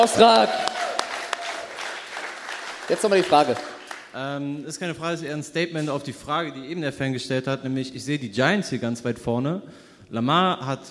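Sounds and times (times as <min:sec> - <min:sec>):
speech: 0:00.0 - 0:00.7, 0:02.9 - 0:10.8
audience applause: 0:00.0 - 0:04.2.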